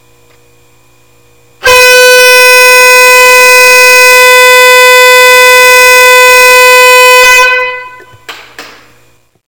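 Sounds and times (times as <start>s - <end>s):
air horn: 1.6s - 8.3s.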